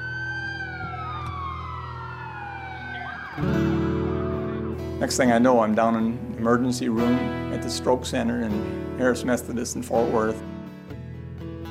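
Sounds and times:
ambulance siren wailing: 0:00.0 - 0:05.0
speech: 0:03.4 - 0:03.7, 0:05.0 - 0:10.5.

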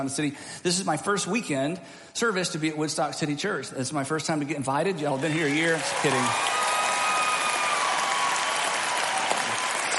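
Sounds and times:
speech: 0:00.0 - 0:06.7
church audience clapping: 0:05.1 - 0:09.9.

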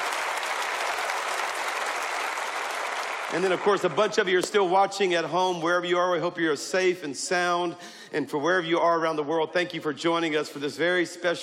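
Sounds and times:
audience clapping: 0:00.0 - 0:04.8
speech: 0:03.3 - 0:11.4.

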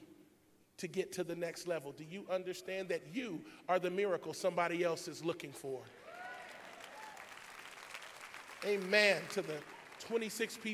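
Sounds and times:
speech: 0:00.8 - 0:06.0, 0:08.6 - 0:10.7
audience clapping: 0:06.0 - 0:10.7.

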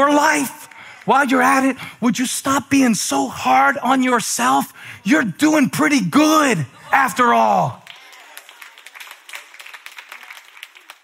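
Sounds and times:
few people clapping: 0:00.0 - 0:01.7, 0:07.6 - 0:11.0
speech: 0:00.0 - 0:07.8.

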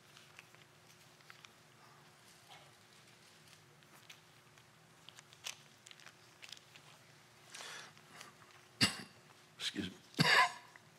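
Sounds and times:
man coughing and gagging: 0:08.8 - 0:09.2, 0:10.2 - 0:10.7.

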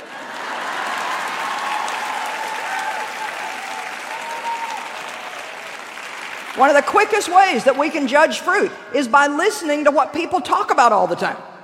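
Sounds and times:
audience applause: 0:00.0 - 0:08.2
speech: 0:06.6 - 0:11.5.

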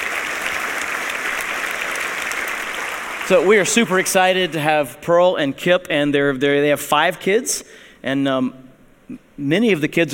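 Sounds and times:
church congregation applauding a welcome: 0:00.0 - 0:04.6
speech: 0:03.3 - 0:10.1.

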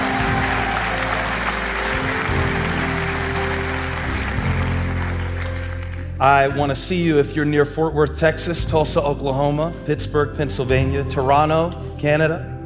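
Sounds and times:
audience clapping hands: 0:00.0 - 0:06.5
speech: 0:06.2 - 0:12.5.

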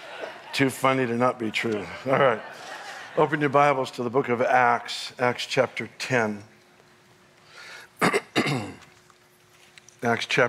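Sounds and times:
laughter: 0:00.0 - 0:04.1
speech: 0:00.6 - 0:06.5, 0:10.0 - 0:10.4
preacher coughing and gagging during a church sermon: 0:08.0 - 0:08.8.

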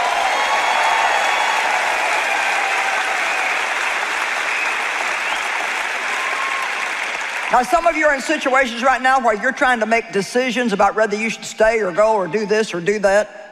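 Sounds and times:
audience clapping: 0:00.0 - 0:08.7
speech: 0:07.5 - 0:13.4.

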